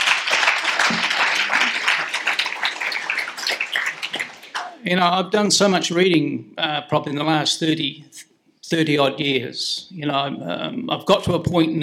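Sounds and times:
round of applause: 0:00.0 - 0:04.9
speech: 0:04.9 - 0:11.8.

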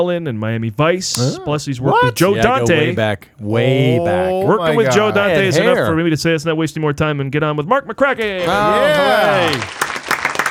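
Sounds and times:
speech: 0:00.0 - 0:09.8
laughter: 0:01.2 - 0:06.0, 0:08.3 - 0:09.7
applause: 0:08.4 - 0:10.4.

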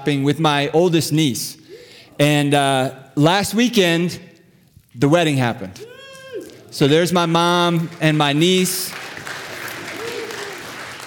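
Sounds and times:
speech: 0:00.0 - 0:01.6, 0:02.2 - 0:04.3, 0:05.0 - 0:06.0, 0:06.7 - 0:09.0
audience applause: 0:08.9 - 0:11.0.

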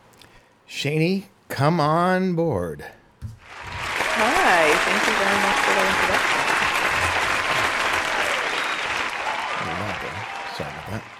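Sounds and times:
speech: 0:00.7 - 0:03.0, 0:04.2 - 0:06.5, 0:10.0 - 0:11.1
loud audience applause: 0:03.4 - 0:11.1.

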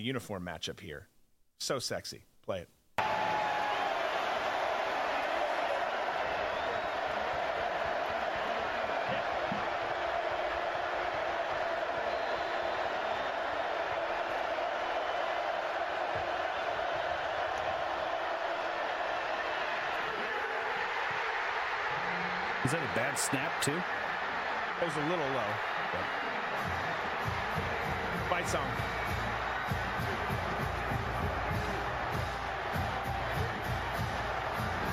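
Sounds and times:
speech: 0:00.0 - 0:03.1, 0:23.2 - 0:24.1, 0:24.8 - 0:27.6, 0:28.3 - 0:29.0
stadium crowd roaring after a football stop: 0:03.0 - 0:34.9.

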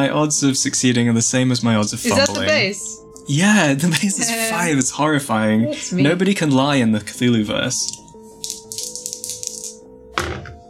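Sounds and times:
speech: 0:00.0 - 0:08.0
laughter: 0:02.1 - 0:02.6, 0:03.8 - 0:04.8, 0:05.6 - 0:06.2
dice rolling: 0:07.9 - 0:09.8.

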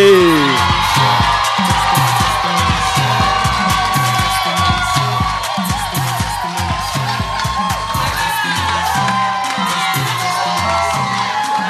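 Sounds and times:
audience clapping: 0:00.1 - 0:11.6.

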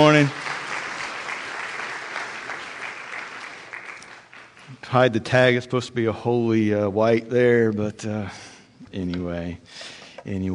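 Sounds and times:
speech: 0:00.0 - 0:00.4, 0:04.8 - 0:10.5
audience applause: 0:00.0 - 0:04.8.

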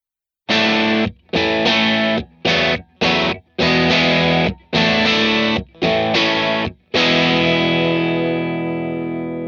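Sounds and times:
distorted electric guitar recorded with a ribbon microphone: 0:00.5 - 0:09.4.

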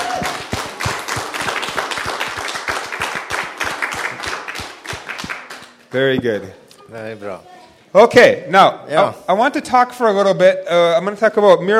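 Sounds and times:
audience clapping: 0:00.0 - 0:06.2
speech: 0:06.0 - 0:11.7.

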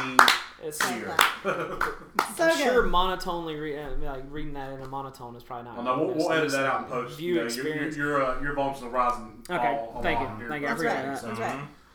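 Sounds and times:
laughter: 0:00.0 - 0:02.9, 0:06.2 - 0:11.7
slow hand clapping: 0:00.0 - 0:03.1
speech: 0:00.0 - 0:11.8.

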